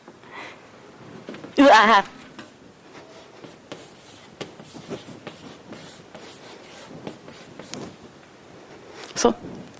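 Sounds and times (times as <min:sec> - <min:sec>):
speech: 0:01.6 - 0:02.2, 0:09.2 - 0:09.5
writing with an extremely short piece of chalk on a board: 0:03.0 - 0:07.9.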